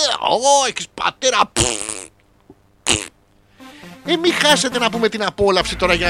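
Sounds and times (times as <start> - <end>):
speech: 0.2 - 1.9, 4.1 - 6.0
fart: 1.6 - 2.1, 2.8 - 3.2.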